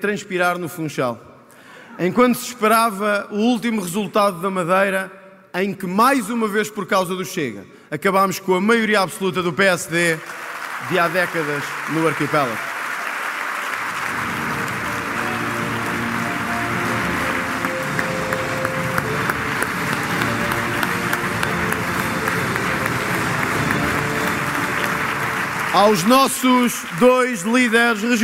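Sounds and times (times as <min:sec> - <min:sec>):
speech: 0:00.0 - 0:01.3, 0:02.0 - 0:12.7, 0:25.8 - 0:28.2
crowd applause at political rally: 0:10.2 - 0:28.2.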